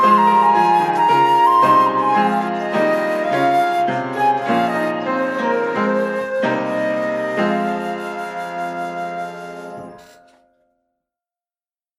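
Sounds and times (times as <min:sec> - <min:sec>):
flute: 0:00.0 - 0:10.5
piano: 0:00.0 - 0:10.8.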